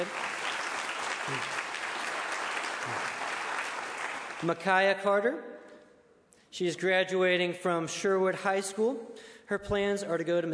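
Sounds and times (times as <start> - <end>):
audience applauding: 0.0 - 4.5
low vocal sounds: 1.2 - 1.6
speech: 1.3 - 1.6, 2.8 - 3.1, 4.4 - 5.6, 6.5 - 10.5.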